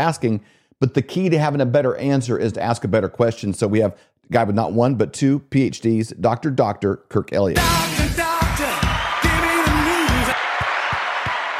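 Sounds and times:
speech: 0:00.0 - 0:08.0
studio audience applause and cheering: 0:07.9 - 0:11.5.

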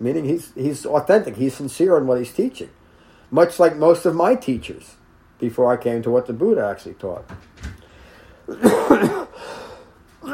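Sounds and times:
speech: 0:00.0 - 0:07.7, 0:08.5 - 0:09.2
short dry little coughs from blood pressure medicine side effect: 0:08.5 - 0:09.8.

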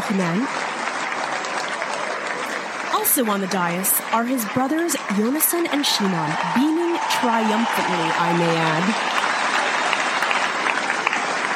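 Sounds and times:
applause from friends and supporters: 0:00.0 - 0:11.5
speech: 0:00.1 - 0:00.6, 0:03.0 - 0:09.1.

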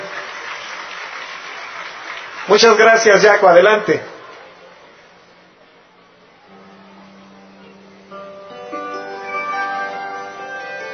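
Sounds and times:
audience applause: 0:00.0 - 0:05.1
speech: 0:02.5 - 0:04.1.

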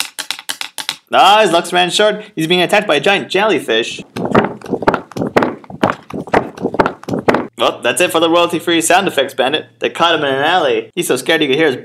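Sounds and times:
speech: 0:01.1 - 0:04.3, 0:07.6 - 0:11.8
pony hooves galloping: 0:04.0 - 0:07.5.

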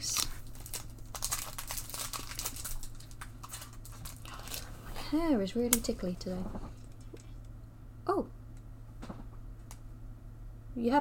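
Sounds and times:
trading card booster pack wrapper crinkling: 0:00.0 - 0:06.2
low constant hum: 0:00.0 - 0:10.9
speech: 0:05.1 - 0:06.8, 0:10.8 - 0:10.9.

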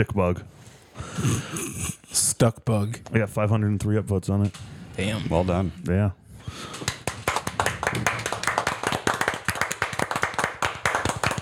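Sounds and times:
speech: 0:00.0 - 0:06.8
hand clapping: 0:06.6 - 0:11.4.

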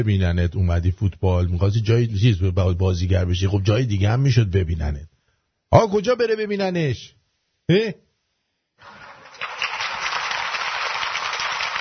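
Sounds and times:
speech: 0:00.0 - 0:05.1, 0:05.7 - 0:08.0
audience applause: 0:08.8 - 0:11.7.

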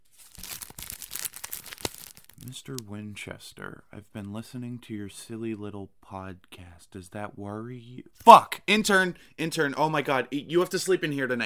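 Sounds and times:
envelope being torn open: 0:00.0 - 0:02.6
speech: 0:02.5 - 0:11.4.

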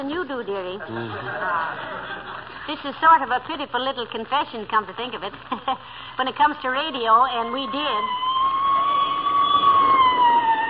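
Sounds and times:
speech: 0:00.0 - 0:08.3
laughter: 0:00.8 - 0:02.7
police squad car siren passing: 0:07.5 - 0:10.6.

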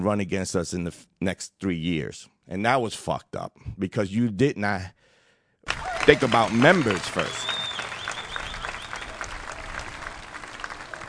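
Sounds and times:
speech: 0:00.0 - 0:07.6
crowd applause: 0:05.7 - 0:11.0.

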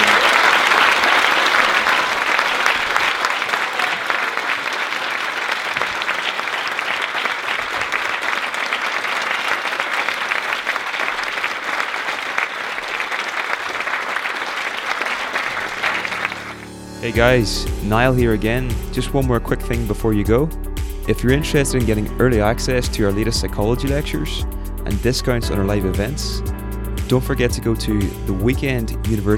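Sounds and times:
audience applause: 0:00.0 - 0:16.8
speech: 0:17.1 - 0:26.5, 0:27.1 - 0:29.3.

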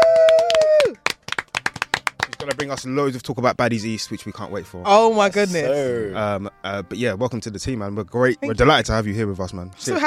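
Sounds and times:
round of applause: 0:00.0 - 0:02.9
speech: 0:02.4 - 0:10.0.

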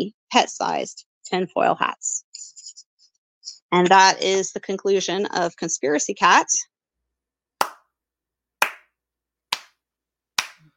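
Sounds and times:
speech: 0:00.0 - 0:02.5, 0:03.7 - 0:06.7
slow hand clapping: 0:07.6 - 0:07.8, 0:08.6 - 0:08.9, 0:09.5 - 0:09.8, 0:10.4 - 0:10.7.

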